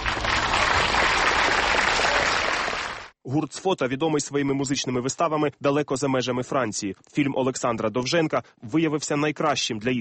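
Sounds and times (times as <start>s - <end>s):
audience applause in a concert hall: 0.0s - 3.1s
speech: 3.3s - 9.9s.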